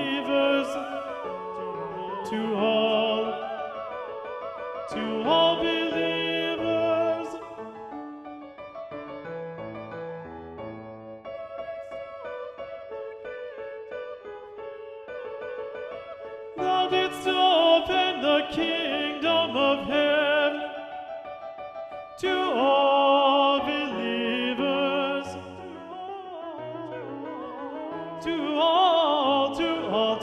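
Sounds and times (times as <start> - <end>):
tenor singing: 0.0 - 8.2, 16.5 - 21.1, 22.2 - 30.2.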